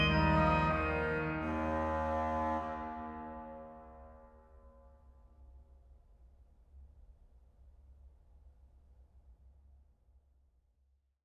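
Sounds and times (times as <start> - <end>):
brass band fanfare: 0.0 - 4.2.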